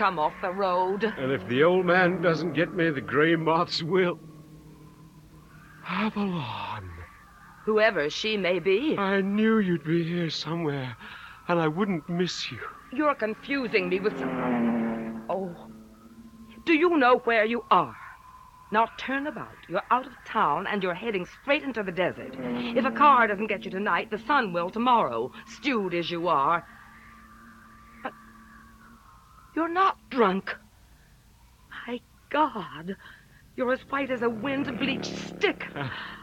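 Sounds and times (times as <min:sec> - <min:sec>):
siren: 0:00.0 - 0:32.5, 0:33.1 - 0:36.2
traffic: 0:00.0 - 0:36.2
wind: 0:00.0 - 0:36.2.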